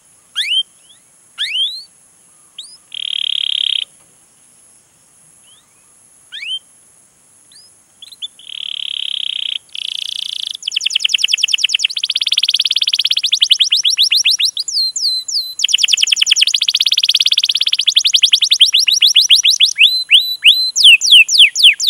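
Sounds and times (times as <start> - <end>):
canary lure recording of long continuous vigorous canary song: 0.4 - 1.9, 2.6 - 3.9, 7.6 - 21.8.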